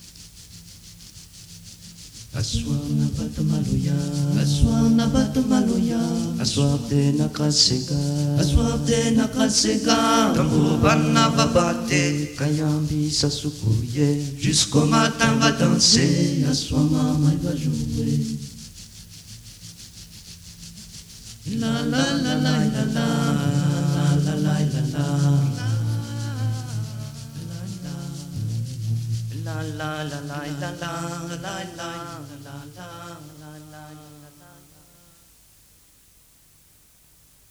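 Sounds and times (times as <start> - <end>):
Maloya vocal singing: 2.4 - 18.5, 21.5 - 34.6.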